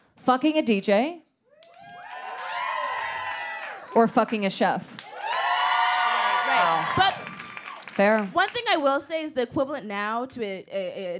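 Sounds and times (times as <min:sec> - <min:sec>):
speech: 0:00.2 - 0:01.3, 0:03.9 - 0:05.0, 0:06.6 - 0:07.2, 0:08.0 - 0:11.1
live audience cheering and whooping: 0:01.5 - 0:04.0, 0:05.0 - 0:08.4
applause: 0:01.6 - 0:08.8.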